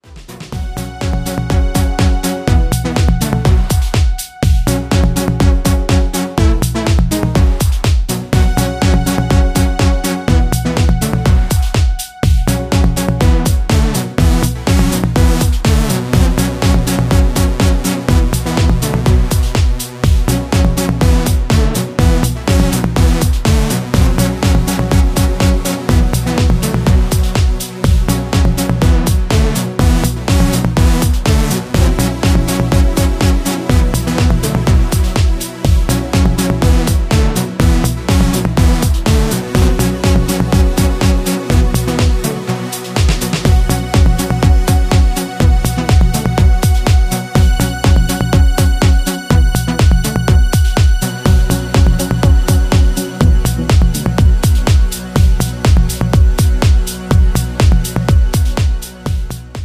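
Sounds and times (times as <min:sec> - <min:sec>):
dub music: 0:00.0 - 0:59.6.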